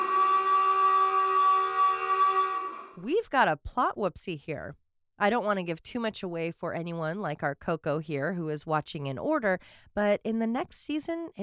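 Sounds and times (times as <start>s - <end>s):
alarm siren: 0.0s - 3.0s
speech: 3.0s - 11.4s.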